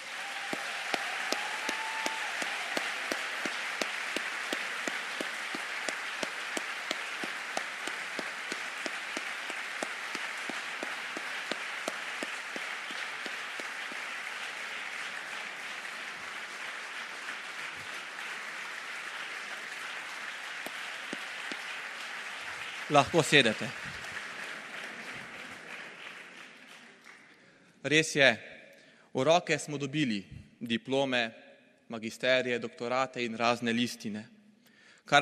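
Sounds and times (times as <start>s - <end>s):
strong applause from a large crowd: 0.0s - 27.5s
speech: 22.9s - 24.0s, 27.8s - 28.5s, 29.2s - 34.4s.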